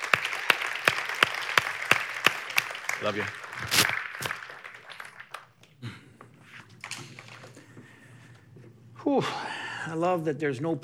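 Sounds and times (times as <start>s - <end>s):
audience clapping at a church service: 0.0s - 8.4s
speech: 3.0s - 4.3s, 9.1s - 10.8s.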